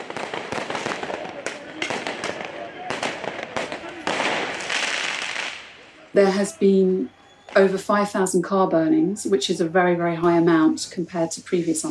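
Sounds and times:
firework mortars and Roman candle blasters firing: 0.0 - 6.4
speech: 6.1 - 11.8.

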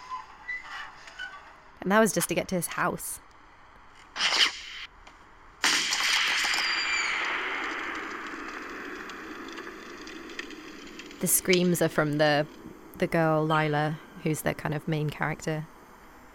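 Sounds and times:
speech: 1.8 - 3.2, 11.2 - 15.7
gunshots: 4.2 - 4.9, 5.6 - 11.1.

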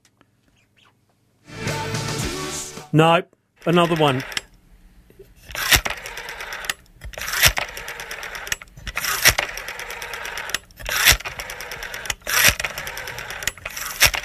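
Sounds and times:
speech: 2.9 - 4.4
old landline telephone ringing: 3.6 - 4.5, 5.6 - 14.2.

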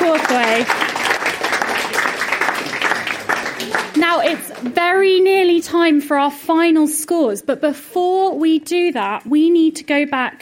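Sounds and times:
audience applause: 0.0 - 4.8
speech: 0.3 - 1.0, 4.1 - 10.4.

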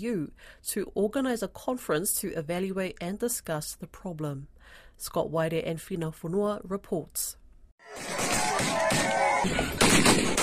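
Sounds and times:
speech: 0.0 - 10.4
gunfire from gunmen in an armed ambush in Wapenamanda, Papua New Guinea: 8.0 - 10.4.

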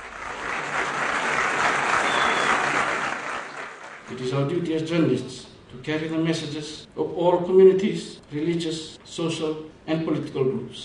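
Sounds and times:
audience applause at award ceremony: 0.0 - 4.1
speech: 4.2 - 10.8.

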